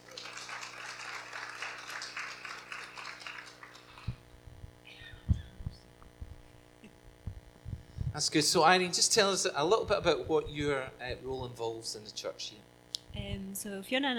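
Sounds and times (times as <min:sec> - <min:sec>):
applause welcoming a speaker at a church: 0:00.0 - 0:04.2
low thumps: 0:04.1 - 0:08.3, 0:09.7 - 0:11.6, 0:13.0 - 0:13.6
speech: 0:08.2 - 0:14.1.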